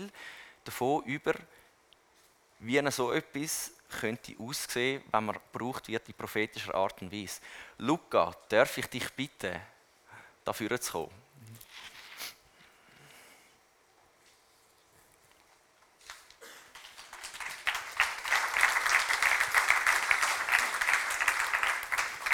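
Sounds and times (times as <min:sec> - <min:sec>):
speech: 0:00.1 - 0:01.6, 0:02.6 - 0:09.7, 0:10.4 - 0:11.2
audience applause: 0:16.6 - 0:22.3.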